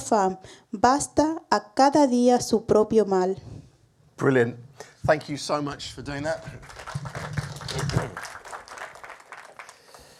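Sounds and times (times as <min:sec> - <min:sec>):
speech: 0:00.1 - 0:03.6, 0:04.2 - 0:08.3
audience clapping: 0:05.9 - 0:10.1.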